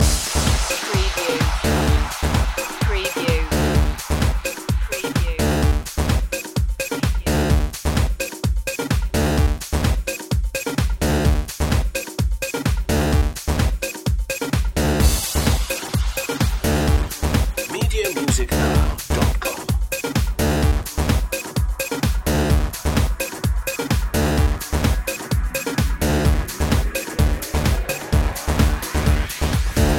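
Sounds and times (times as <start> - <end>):
bouncy music loop: 0.0 - 29.9.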